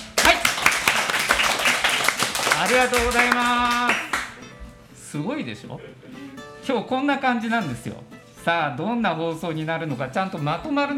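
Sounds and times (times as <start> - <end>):
audience clapping: 0.0 - 4.4
speech: 2.7 - 3.9, 5.1 - 10.9.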